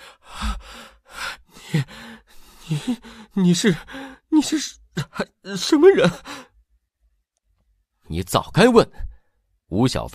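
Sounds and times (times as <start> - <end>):
heavy panting after a chase: 0.0 - 4.3, 6.0 - 6.5
speech: 1.7 - 2.0, 2.7 - 6.4, 8.1 - 9.1, 9.7 - 10.1.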